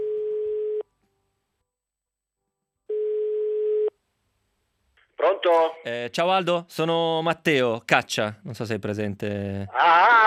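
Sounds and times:
phone ringing tone on the line while waiting for an answer: 0.0s - 0.8s, 2.9s - 3.9s
speech: 5.4s - 10.2s.

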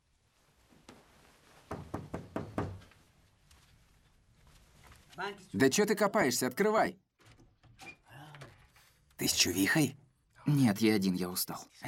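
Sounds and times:
knocking on a bedroom door: 1.7s - 2.9s
speech: 5.2s - 7.0s, 9.3s - 11.8s.

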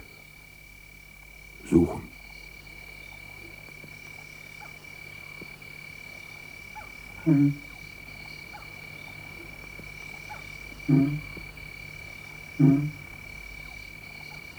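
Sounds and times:
lions grunting moans: 1.6s - 2.1s
speech: 1.6s - 2.1s, 7.3s - 7.6s, 10.9s - 11.2s.

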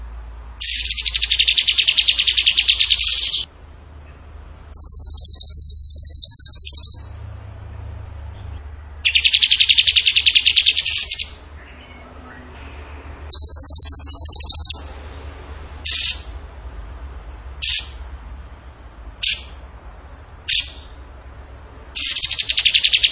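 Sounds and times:
steady low hum: 0.0s - 23.0s
bird pulsing trill: 0.6s - 7.4s, 8.3s - 15.1s, 15.8s - 16.5s, 17.6s - 18.1s, 19.2s - 19.6s, 20.5s - 21.0s, 21.9s - 23.0s.

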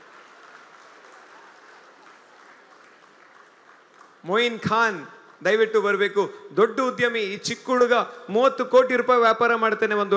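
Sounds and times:
audience applause welcoming a guest on stage at an event in Mangaluru: 0.0s - 6.5s
speech: 4.2s - 10.1s.

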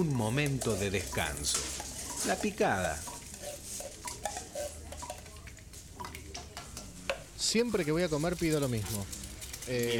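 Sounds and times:
speech: 0.0s - 3.1s, 7.5s - 9.9s
dishes and cutlery clattering in a small café: 0.3s - 6.9s.

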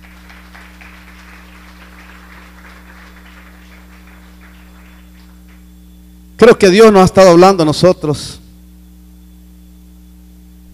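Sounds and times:
audience clapping: 0.0s - 5.7s
speech: 6.4s - 8.4s.

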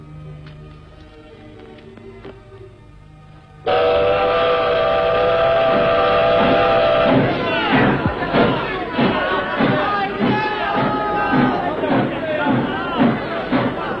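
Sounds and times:
train whistle in a staged opera scene: 3.6s - 8.0s
departing train cars chugging and clanking: 3.6s - 13.9s
voices: 3.7s - 13.9s.

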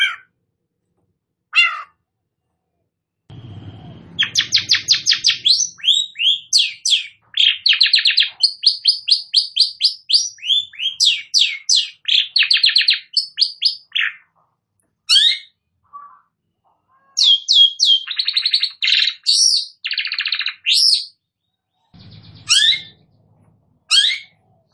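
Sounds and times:
low rumbling: 3.3s - 5.9s, 22.0s - 24.7s
long-tailed shrike song with chirps and trills: 3.3s - 24.7s.

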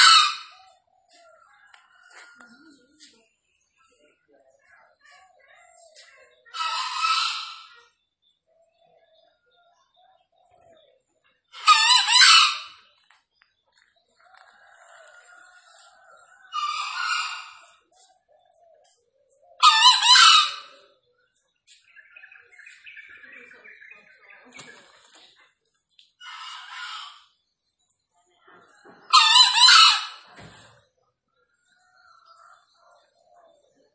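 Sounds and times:
green junglefowl crowing: 0.0s - 2.5s, 11.6s - 12.9s, 14.3s - 17.8s, 19.6s - 20.8s, 29.1s - 30.4s.

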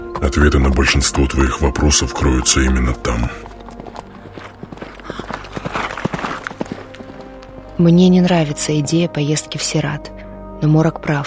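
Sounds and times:
horse hooves clip-clopping: 0.0s - 8.2s
speech: 0.2s - 3.5s, 7.8s - 11.2s.

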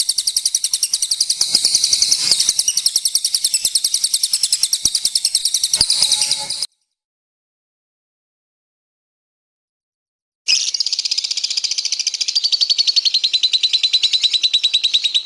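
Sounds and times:
lovebird chirp: 0.0s - 6.7s, 10.5s - 15.2s.

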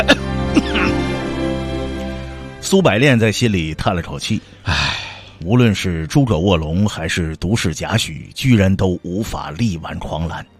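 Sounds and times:
man coughing: 0.0s - 1.2s
speech: 2.7s - 10.5s.

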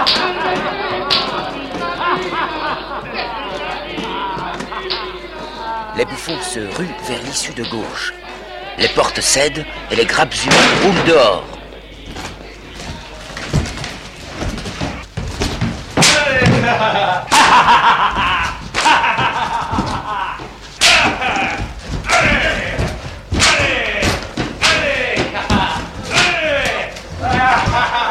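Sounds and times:
people shouting and laughing: 0.0s - 15.1s, 16.0s - 28.0s
speech: 6.0s - 12.2s, 16.7s - 18.4s
whip lashing a catafalque: 20.8s - 21.2s, 23.4s - 25.0s.

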